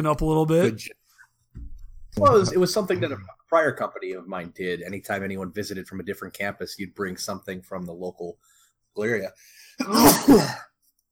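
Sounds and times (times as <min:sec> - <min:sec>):
speech: 0:00.0 - 0:01.0, 0:02.1 - 0:10.7
sneeze: 0:09.8 - 0:10.7.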